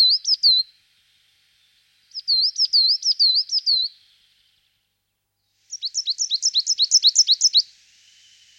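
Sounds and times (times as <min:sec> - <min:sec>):
coal tit song: 0:00.0 - 0:00.7, 0:02.1 - 0:04.4, 0:05.6 - 0:08.5.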